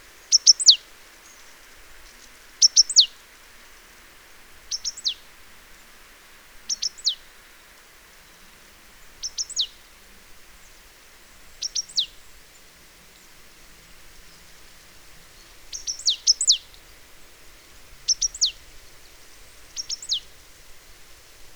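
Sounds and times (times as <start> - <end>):
great tit Parus major calling: 0.2 - 3.2, 4.7 - 5.3, 6.7 - 7.2, 9.0 - 9.9, 11.5 - 12.6, 15.2 - 16.9, 18.0 - 18.7, 19.7 - 20.3.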